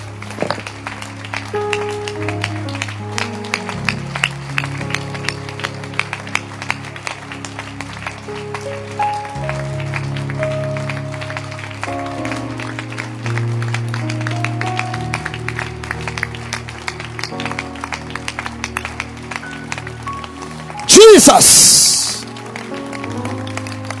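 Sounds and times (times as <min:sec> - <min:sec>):
audience clapping hands: 0:00.0 - 0:23.9
speech: 0:21.3 - 0:21.8.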